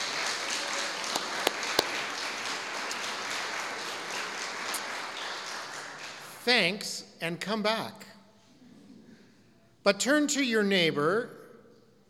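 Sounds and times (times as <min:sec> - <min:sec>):
audience applause: 0:00.0 - 0:06.4
speech: 0:06.5 - 0:08.1, 0:09.8 - 0:11.4.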